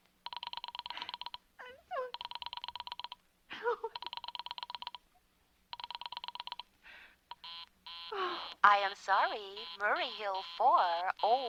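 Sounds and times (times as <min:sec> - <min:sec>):
telephone tone as an operator rings a Murray Hill number: 0:00.3 - 0:01.4, 0:02.1 - 0:03.2, 0:04.0 - 0:05.0, 0:05.8 - 0:06.6, 0:07.3 - 0:11.4
speech: 0:08.7 - 0:11.4.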